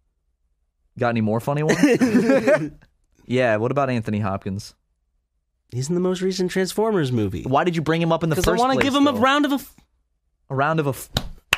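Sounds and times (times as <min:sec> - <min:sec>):
speech: 0:01.0 - 0:04.8, 0:05.7 - 0:09.8, 0:10.5 - 0:11.2
laughter: 0:01.7 - 0:02.8
hand clapping: 0:08.4 - 0:09.2, 0:11.1 - 0:11.5.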